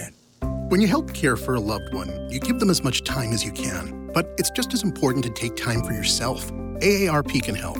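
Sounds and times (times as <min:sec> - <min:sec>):
arpeggio: 0:00.6 - 0:07.7.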